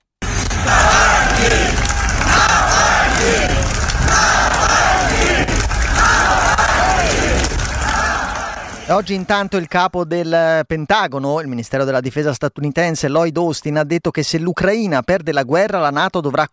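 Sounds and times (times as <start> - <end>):
crowd chanting a name in chorus outside a church: 0.2 - 9.1
speech: 8.9 - 16.5.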